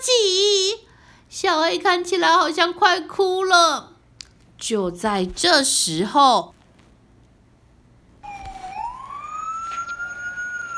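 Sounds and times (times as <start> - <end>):
speech: 1.4 - 3.9, 4.6 - 6.6
fire engine siren: 8.2 - 10.7.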